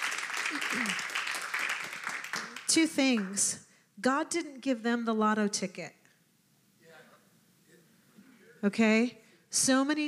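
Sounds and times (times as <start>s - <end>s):
church audience thank-you clapping: 0.0s - 3.5s
speech: 0.5s - 1.2s, 2.7s - 6.0s, 8.6s - 10.0s.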